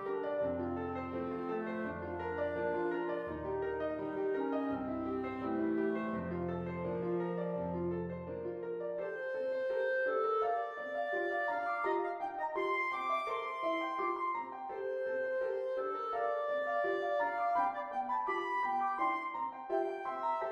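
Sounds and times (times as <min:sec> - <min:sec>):
clarinet: 0:00.0 - 0:20.4
piano: 0:00.0 - 0:20.4.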